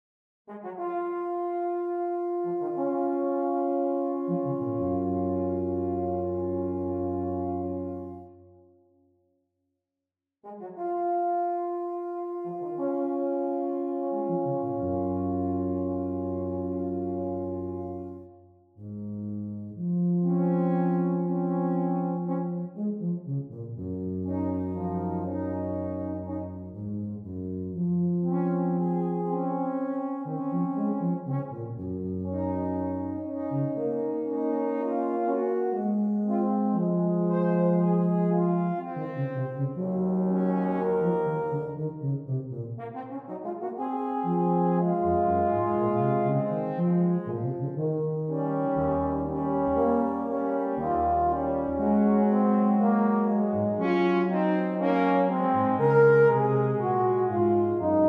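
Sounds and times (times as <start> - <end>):
slow lyrical larghetto cantabile music: 0.6 - 8.9, 10.6 - 58.0.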